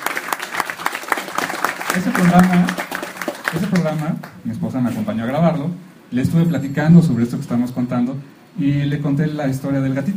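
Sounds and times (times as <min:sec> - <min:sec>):
applause: 0:00.0 - 0:04.4
speech: 0:02.0 - 0:02.9, 0:03.5 - 0:10.1.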